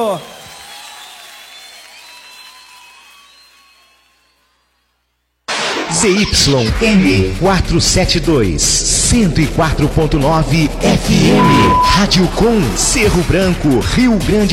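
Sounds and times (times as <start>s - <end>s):
speech: 0.0s - 0.4s, 5.9s - 14.5s
audience clapping hands: 0.0s - 3.8s.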